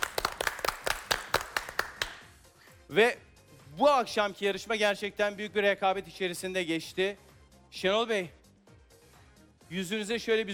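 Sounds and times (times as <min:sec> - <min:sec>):
small quiz show audience clapping: 0:00.0 - 0:02.4
speech: 0:02.9 - 0:08.4, 0:09.7 - 0:10.5.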